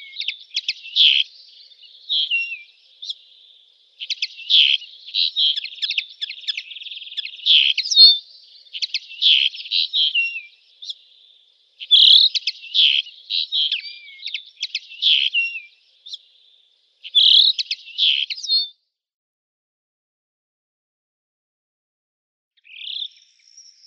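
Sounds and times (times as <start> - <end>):
Eurasian linnet singing buzzy notes and whistled slurs: 0.0 - 18.7.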